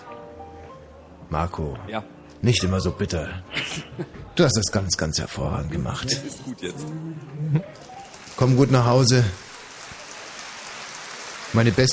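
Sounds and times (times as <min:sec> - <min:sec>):
speech: 0:01.3 - 0:09.5, 0:11.5 - 0:11.9
recorded concert applause: 0:07.8 - 0:11.9.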